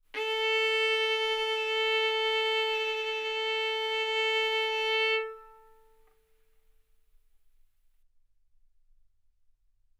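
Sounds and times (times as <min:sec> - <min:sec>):
violin arco on A string: 0:00.2 - 0:06.0.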